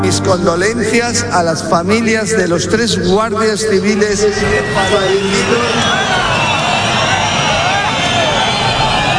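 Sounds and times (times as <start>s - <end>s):
speech: 0.1s - 6.2s
crowd booing: 3.9s - 9.1s.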